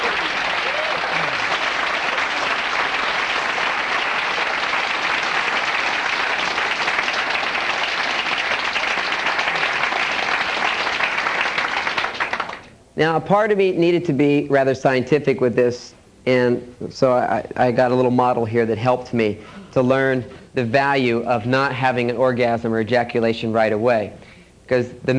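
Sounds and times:
audience clapping: 0.0s - 12.8s
speech: 13.0s - 25.1s.

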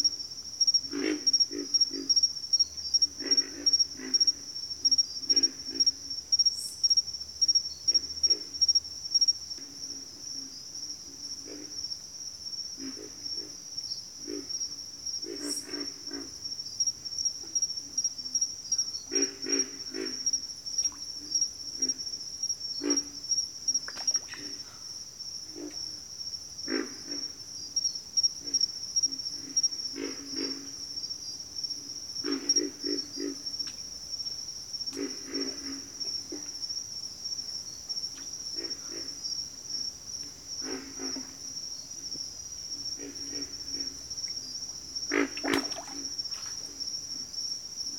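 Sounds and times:
cricket trill: 0.0s - 47.9s
pig frogs grunting: 0.8s - 2.3s, 2.9s - 6.1s, 14.2s - 16.5s, 19.0s - 22.2s, 22.8s - 26.0s, 26.6s - 27.4s, 28.4s - 30.9s, 32.1s - 33.6s, 34.8s - 36.8s, 38.4s - 47.9s.

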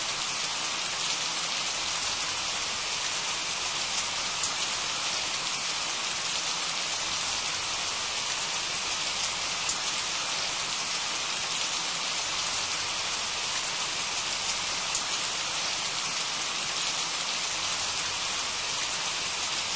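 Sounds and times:
refreshing rain: 0.0s - 19.7s.

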